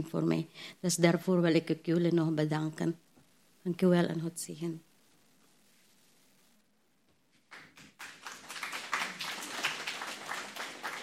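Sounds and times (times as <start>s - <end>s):
speech: 0.0s - 3.0s, 3.6s - 4.9s
audience applause: 7.5s - 11.0s.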